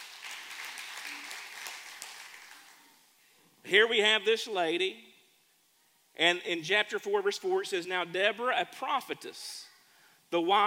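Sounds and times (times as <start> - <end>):
audience clapping: 0.0 - 2.8
speech: 3.6 - 5.1, 6.2 - 9.7, 10.3 - 10.6.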